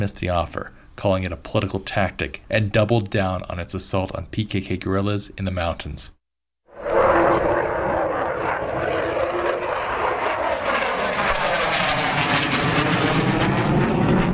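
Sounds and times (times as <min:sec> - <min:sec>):
speech: 0:00.0 - 0:06.2
Turkish F-16 warplanes flying low over Diyarbakir: 0:06.7 - 0:14.3.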